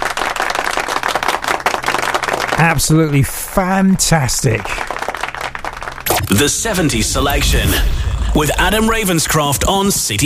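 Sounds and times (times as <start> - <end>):
round of applause: 0.0 - 3.6, 4.4 - 6.4
speech: 2.6 - 4.8, 6.3 - 10.2.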